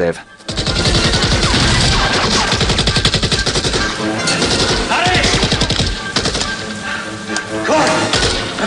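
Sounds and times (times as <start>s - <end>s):
speech: 0.0s - 0.3s
automatic gunfire in a Rambo film scene: 0.5s - 6.6s, 8.1s - 8.5s.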